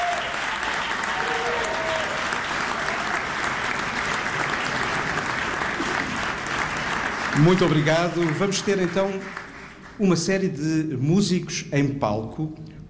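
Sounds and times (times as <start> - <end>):
audience applause: 0.0 - 10.3
speech: 7.4 - 9.4, 10.0 - 12.7.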